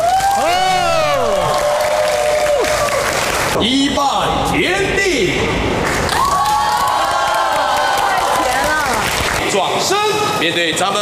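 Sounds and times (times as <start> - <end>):
applause: 0.0 - 3.6, 5.8 - 9.5
speech: 3.6 - 5.7, 9.8 - 11.0.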